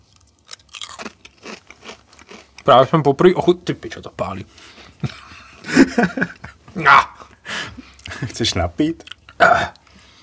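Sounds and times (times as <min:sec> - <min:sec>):
Pringles Wavy potato chips crunching while chewed: 0:00.0 - 0:04.0
speech: 0:02.6 - 0:05.3, 0:06.0 - 0:07.2, 0:08.2 - 0:09.8
laughter: 0:05.0 - 0:07.3.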